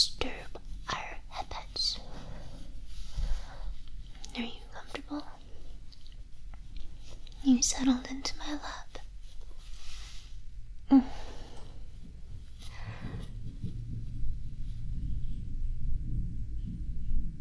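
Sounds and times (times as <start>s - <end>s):
soft breathy hisses: 0.0s - 13.5s
speech: 7.5s - 8.9s
low rolling thunder rumbling: 12.2s - 17.3s.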